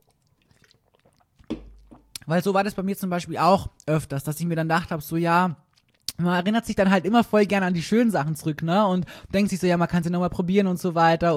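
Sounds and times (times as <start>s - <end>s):
person sipping and swallowing a drink: 0.0s - 2.3s, 5.6s - 6.2s
short knock: 1.5s - 2.0s
speech: 2.3s - 5.6s, 6.2s - 11.3s.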